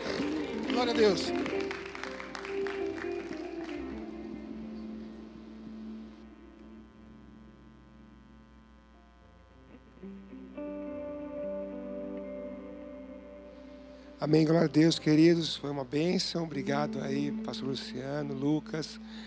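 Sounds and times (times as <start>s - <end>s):
audience applause: 0.0s - 5.2s
soft sustained keyboard chords: 0.0s - 19.2s
speech: 0.8s - 1.6s, 14.2s - 19.2s.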